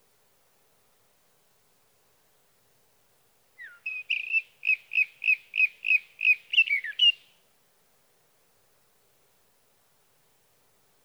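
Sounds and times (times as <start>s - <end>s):
sage thrasher song: 3.6s - 7.3s.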